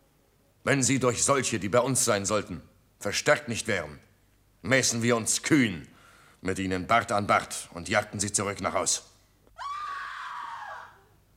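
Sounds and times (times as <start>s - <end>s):
speech: 0.6s - 9.1s
woman's shrill scream: 9.6s - 11.2s.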